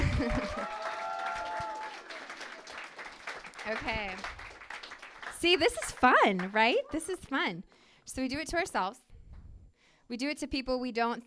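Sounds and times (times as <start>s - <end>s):
audience clapping: 0.0s - 7.4s
speech: 5.4s - 9.0s, 10.1s - 11.2s.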